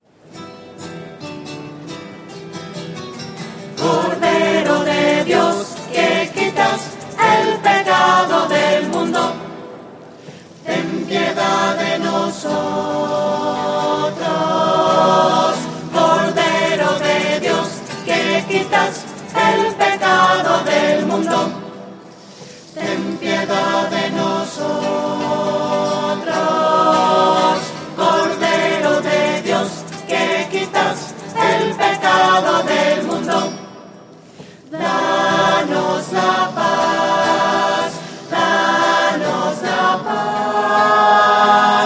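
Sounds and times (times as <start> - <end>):
voices singing: 3.7 - 9.7, 10.6 - 22.0, 22.7 - 33.7, 34.6 - 41.8.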